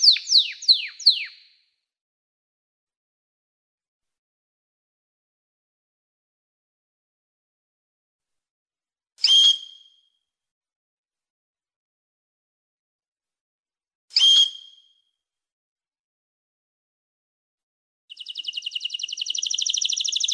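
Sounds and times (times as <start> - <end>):
canary song with chirps and fast buzzing trill: 0.0 - 1.4, 18.1 - 20.3.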